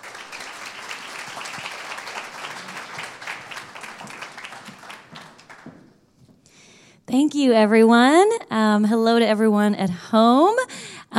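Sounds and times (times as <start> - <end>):
audience applause: 0.0 - 5.9
speech: 7.1 - 10.8.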